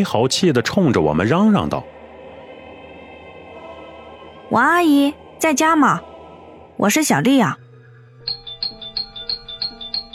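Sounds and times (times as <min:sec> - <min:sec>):
speech: 0:00.0 - 0:01.9, 0:04.5 - 0:06.1, 0:06.8 - 0:07.6
doorbell being rung repeatedly: 0:08.2 - 0:10.1.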